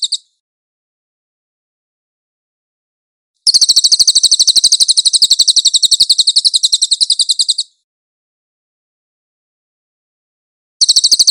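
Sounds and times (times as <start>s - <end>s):
cililin trilling: 0.0s - 0.3s, 3.4s - 7.8s, 10.8s - 11.2s.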